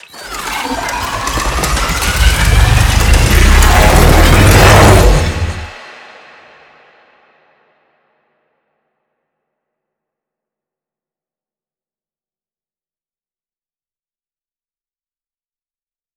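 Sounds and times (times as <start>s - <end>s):
machine riser effect: 0.0s - 5.8s.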